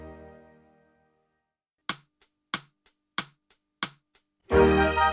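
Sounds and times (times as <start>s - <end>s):
percussion: 1.9s - 5.0s.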